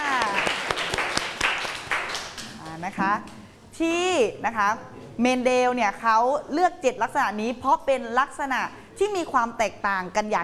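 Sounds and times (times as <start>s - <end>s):
class applauding: 0.0s - 2.7s
speech: 2.9s - 10.4s.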